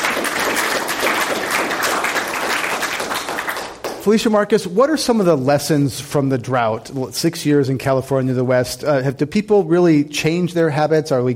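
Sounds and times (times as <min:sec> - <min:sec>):
audience applause: 0:00.0 - 0:04.0
speech: 0:04.0 - 0:11.3.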